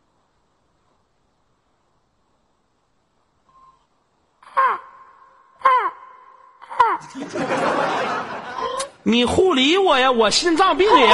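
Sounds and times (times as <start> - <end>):
person imitating a crow's caw: 4.4 - 7.2
laughter: 6.8 - 9.0
speech: 7.0 - 11.1.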